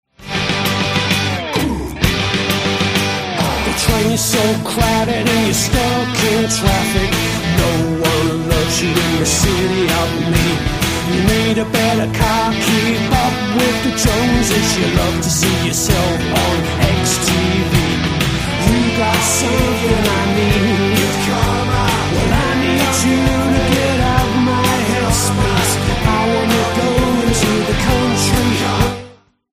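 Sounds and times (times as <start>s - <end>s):
dangerous guitars: 0.1s - 29.3s.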